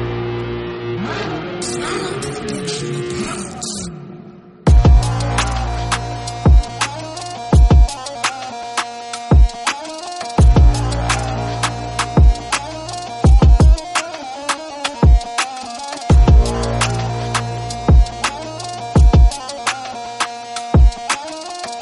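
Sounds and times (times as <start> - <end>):
Kurdish electro beats: 4.7 - 21.8.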